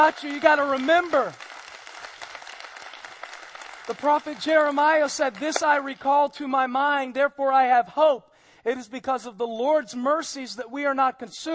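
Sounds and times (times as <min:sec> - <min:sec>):
speech: 0:00.0 - 0:01.4, 0:03.9 - 0:11.5
audience clapping hands: 0:00.0 - 0:06.2.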